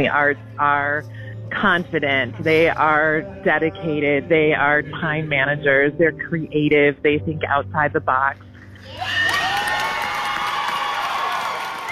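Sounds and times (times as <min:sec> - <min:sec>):
speech: 0:00.0 - 0:09.3
audience applause: 0:08.8 - 0:11.9.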